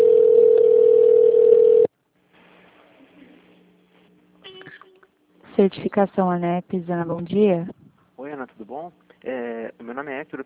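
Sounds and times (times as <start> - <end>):
telephone line tone while a call to an automated phone menu connects: 0.0 - 1.9
speech: 5.6 - 7.8, 8.5 - 10.4.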